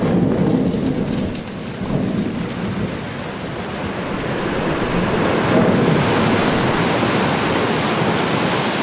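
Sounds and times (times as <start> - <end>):
ship's hull crashing through ice: 0.0 - 8.7.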